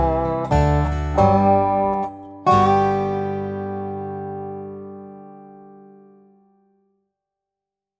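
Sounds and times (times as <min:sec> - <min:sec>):
backing track: 0:00.0 - 0:04.8
dobro playing: 0:00.0 - 0:05.3.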